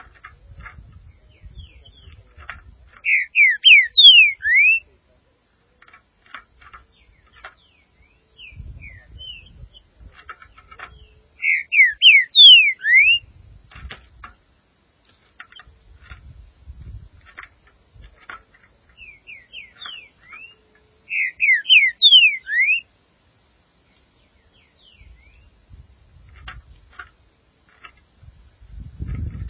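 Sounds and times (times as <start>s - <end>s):
green-winged saltator singing: 3.0s - 4.9s, 8.0s - 9.6s, 10.9s - 13.3s, 19.0s - 22.9s.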